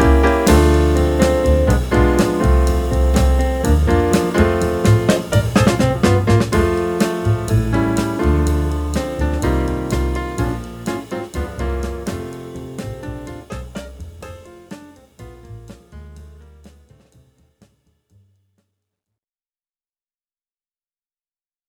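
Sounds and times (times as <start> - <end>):
jazz trio playing: 0.0 - 17.4.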